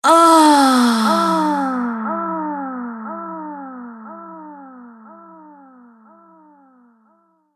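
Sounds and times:
woman groaning during sex with delay effect: 0:00.0 - 0:02.4.

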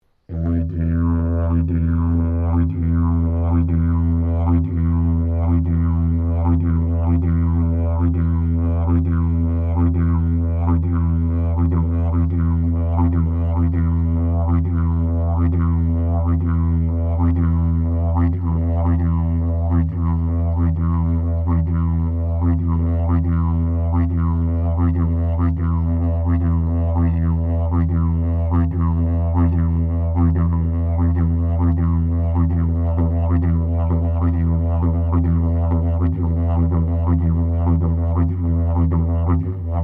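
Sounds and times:
traditional tapered Maiali didgeridoo drone: 0:00.3 - 0:39.8.

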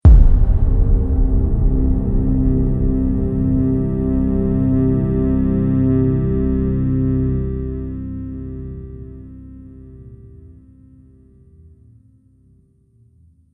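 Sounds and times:
dark doom trailer hit: 0:00.0 - 0:07.5.

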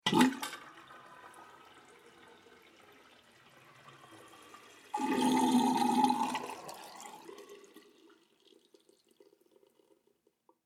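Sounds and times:
water sink draining: 0:00.0 - 0:10.1.

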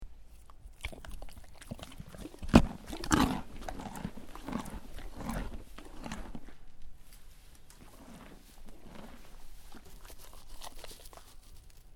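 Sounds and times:
horse chewing: 0:00.2 - 0:11.9
soft rustling between bites: 0:04.0 - 0:11.9.

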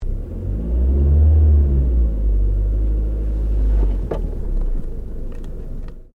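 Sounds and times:
Ford Focus accelerating slowly, interior: 0:00.0 - 0:06.1.

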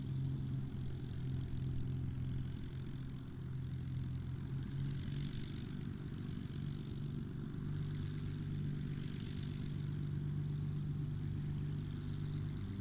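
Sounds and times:
distant Supermarine Spitfire Mk XVI aircraft idling: 0:00.0 - 0:12.7.

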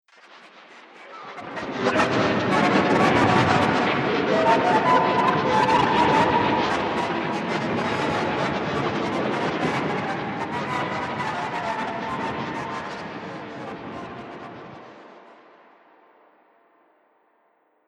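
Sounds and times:
scary soundscape: 0:01.3 - 0:13.9.

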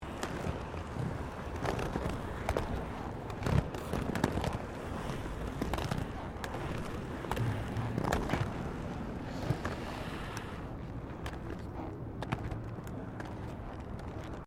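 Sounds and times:
rollerblading on paving with mixed maneuvering: 0:00.0 - 0:14.4.

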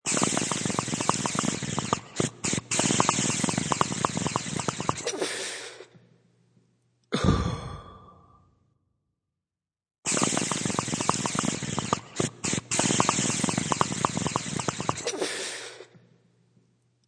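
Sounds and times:
waterpipe exhale: 0:00.0 - 0:05.9, 0:10.1 - 0:15.9.

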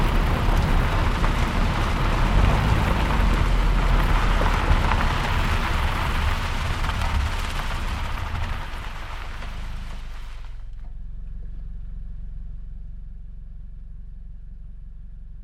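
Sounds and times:
Toyota Corolla hatchback driving on gravel with medium exhaust: 0:00.0 - 0:15.3.

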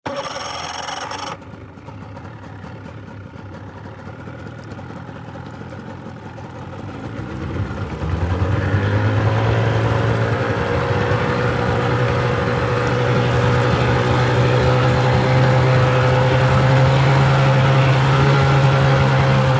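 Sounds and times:
dive raft engine starting, revving and shutting off: 0:00.0 - 0:01.4, 0:07.4 - 0:19.5.

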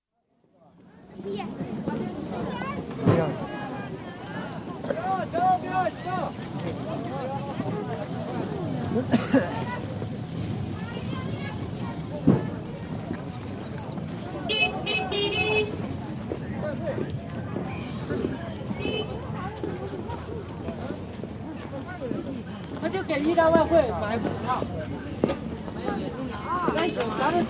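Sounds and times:
busy market atmosphere in Changchun: 0:00.1 - 0:27.4
light traffic in Changchun: 0:00.6 - 0:27.4.

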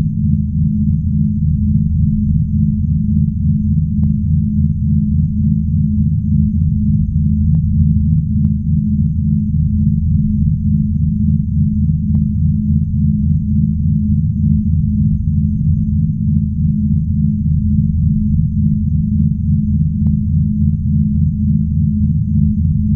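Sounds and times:
spaceship drone hum: 0:00.0 - 0:22.9.

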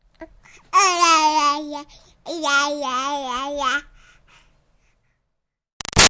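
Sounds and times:
six-month-old baby babbling ya ya: 0:00.2 - 0:03.9.

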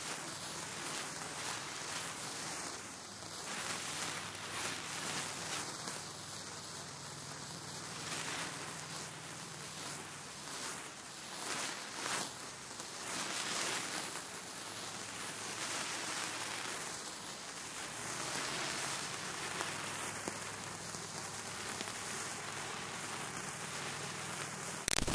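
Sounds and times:
multiple fire sparklers burning and passing by: 0:00.0 - 0:25.1.

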